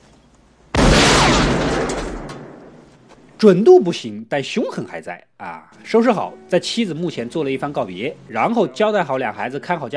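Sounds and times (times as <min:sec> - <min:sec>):
double-barreled shotgun fired in the western film Unforgiven: 0:00.8 - 0:02.8
speech: 0:03.4 - 0:09.9.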